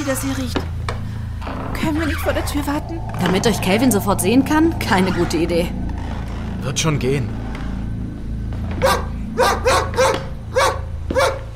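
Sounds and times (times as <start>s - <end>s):
speech: 0.0s - 0.8s, 1.5s - 5.8s, 6.6s - 7.4s
low rumbling hum: 0.0s - 11.5s
dog barking: 8.8s - 11.5s.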